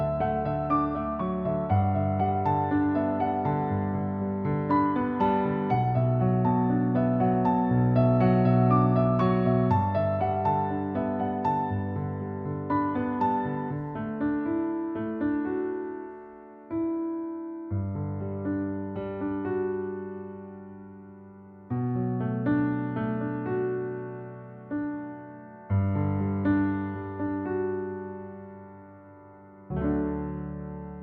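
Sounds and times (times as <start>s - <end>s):
light piano music: 0.0s - 31.0s.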